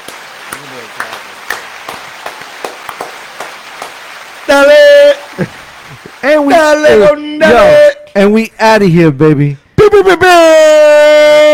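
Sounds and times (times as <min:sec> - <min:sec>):
applause sound effect: 0:00.0 - 0:07.7
speech: 0:04.5 - 0:04.8, 0:05.4 - 0:05.6, 0:06.4 - 0:11.5
laughter: 0:05.1 - 0:07.9.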